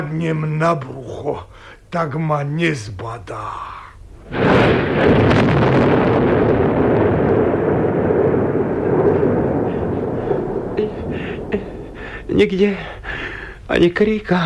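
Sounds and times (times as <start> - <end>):
speech: 0.0 - 5.8, 12.4 - 14.4
thunder of an approaching storm: 4.2 - 13.4.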